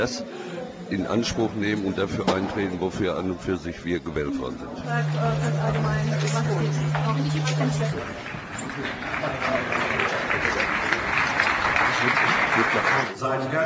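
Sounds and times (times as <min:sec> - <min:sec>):
speech: 0:00.0 - 0:09.8, 0:12.0 - 0:13.6
low electrical hum: 0:04.3 - 0:11.7
crowd applauding: 0:04.8 - 0:13.2.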